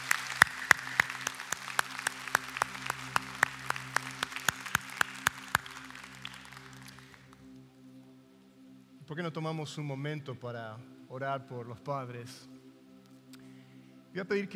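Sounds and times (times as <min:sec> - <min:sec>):
audience applause: 0:00.0 - 0:07.4
speech: 0:09.1 - 0:12.5, 0:14.1 - 0:14.5.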